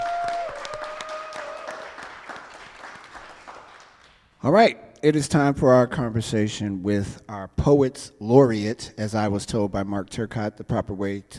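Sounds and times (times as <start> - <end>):
audience applause: 0.0 - 4.2
speech: 4.4 - 11.3.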